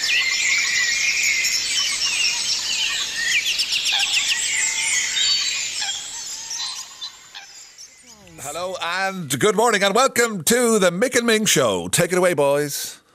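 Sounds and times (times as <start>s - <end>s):
dawn chorus birdsong at a marsh: 0.0s - 9.8s
speech: 9.1s - 13.0s.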